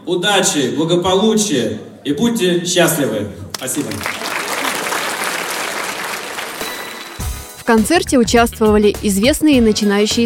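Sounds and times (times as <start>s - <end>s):
speech: 0.1s - 4.3s, 7.7s - 10.2s
audience applause: 3.5s - 7.5s.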